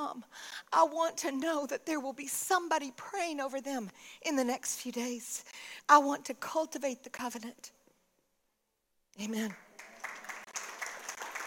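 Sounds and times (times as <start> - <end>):
speech: 0.1 - 7.8, 9.2 - 9.6
audience clapping: 9.5 - 11.4.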